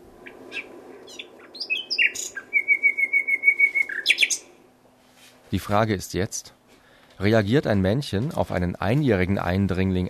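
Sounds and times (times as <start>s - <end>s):
song of an older male nightingale: 0.0s - 4.6s
speech: 5.5s - 6.6s, 7.2s - 10.0s.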